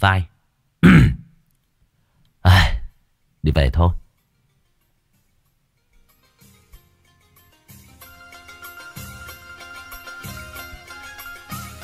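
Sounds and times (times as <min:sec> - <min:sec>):
speech: 0:00.0 - 0:01.2, 0:03.4 - 0:04.0
loud gruff throat clearing: 0:00.8 - 0:01.4.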